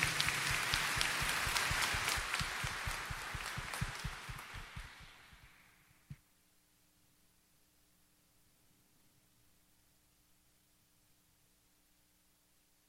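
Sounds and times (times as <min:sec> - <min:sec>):
audience applauding: 0:00.0 - 0:05.4.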